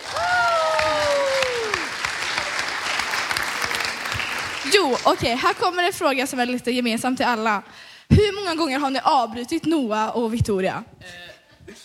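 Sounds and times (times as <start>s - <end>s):
applause: 0.0s - 5.9s
speech: 4.7s - 11.8s.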